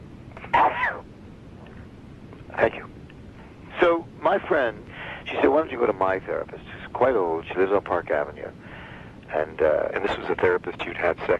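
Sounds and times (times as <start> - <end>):
sneeze: 0.4 - 1.0
speech: 2.6 - 2.9, 3.9 - 8.7, 9.3 - 11.3.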